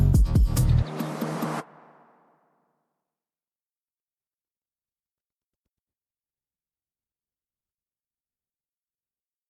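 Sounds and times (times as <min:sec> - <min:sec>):
ethereal phonk music: 0:00.0 - 0:02.4.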